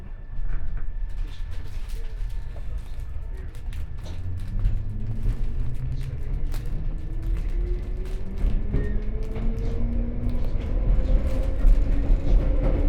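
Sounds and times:
London Underground District Line train: 0:00.0 - 0:12.8.

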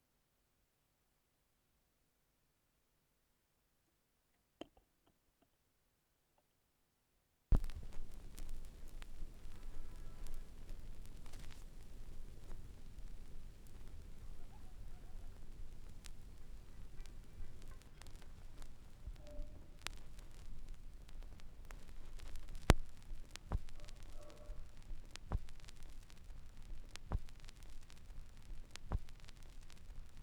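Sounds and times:
vinyl record noise: 0:07.5 - 0:30.2.

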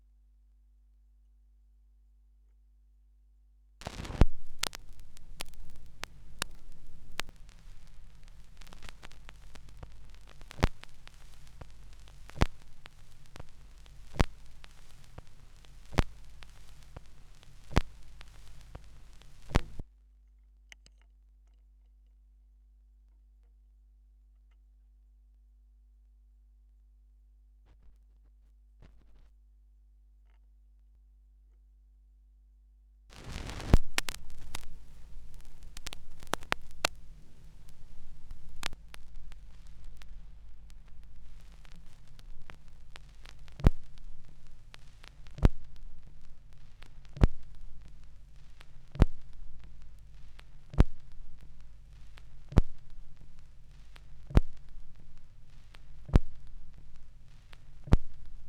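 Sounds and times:
vinyl record noise: 0:03.8 - 0:19.9, 0:28.8 - 0:29.3, 0:33.1 - 0:58.4.

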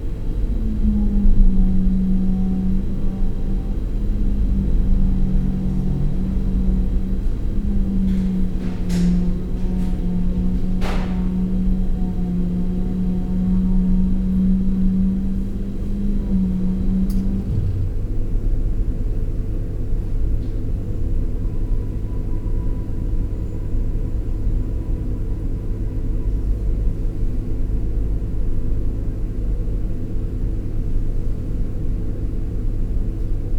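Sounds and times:
refrigerator hum: 0:00.0 - 0:33.5.

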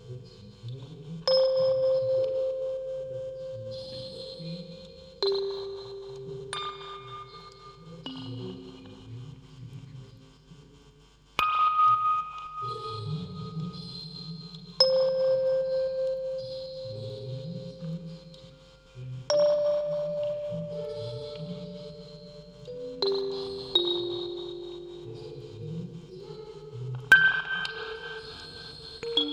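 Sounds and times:
vocoder voice: 0:00.0 - 0:10.8, 0:11.8 - 0:29.3
field recording ambience: 0:00.0 - 0:29.3
music box quartet: 0:01.3 - 0:09.0, 0:14.8 - 0:29.3.

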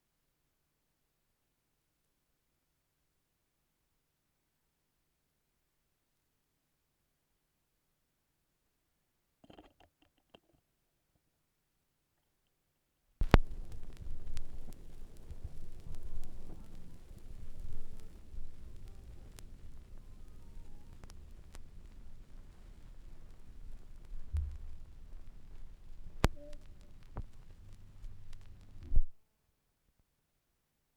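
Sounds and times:
vinyl record noise: 0:13.2 - 0:29.2.

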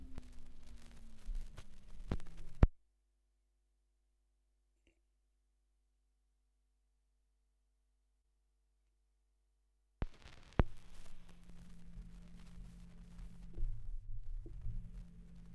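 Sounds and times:
78rpm gramophone record surface noise: 0:00.0 - 0:02.8, 0:10.0 - 0:15.5.

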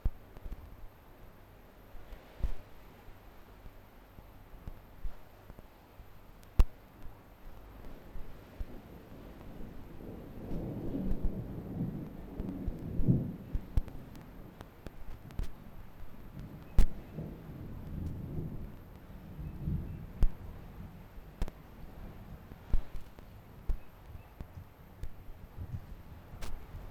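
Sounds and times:
thunderstorm in Curacao: 0:07.8 - 0:26.8.

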